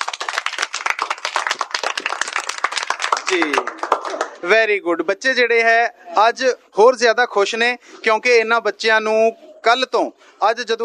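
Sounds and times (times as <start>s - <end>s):
audience applause after a song performance: 0.0s - 4.4s
speech: 3.3s - 10.8s.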